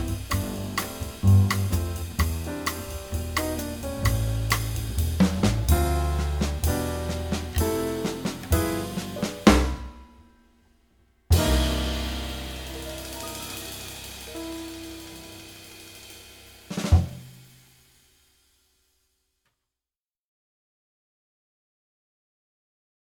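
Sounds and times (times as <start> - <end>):
bossa nova jazz rhythm section: 0.0 - 9.9, 11.4 - 17.2.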